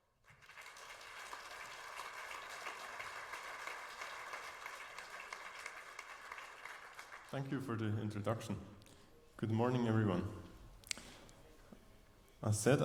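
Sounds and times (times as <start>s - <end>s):
audience applause: 0.2s - 7.6s
speech: 7.3s - 8.8s, 9.4s - 10.5s, 12.4s - 12.8s.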